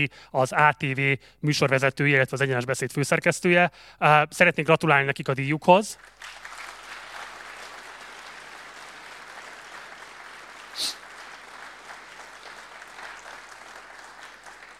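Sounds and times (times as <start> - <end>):
speech: 0.0 - 6.5
audience applause: 6.0 - 14.7.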